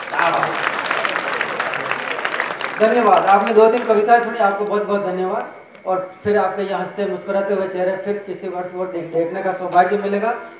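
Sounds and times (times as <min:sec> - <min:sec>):
audience clapping: 0:00.0 - 0:04.7
speech: 0:00.2 - 0:00.7, 0:02.8 - 0:10.5.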